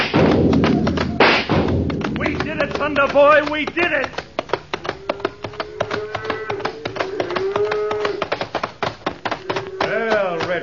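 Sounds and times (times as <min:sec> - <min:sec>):
sharp clicking taps: 0:00.1 - 0:10.6
speech: 0:02.9 - 0:04.2
cow lowing: 0:04.7 - 0:08.4, 0:09.2 - 0:10.0.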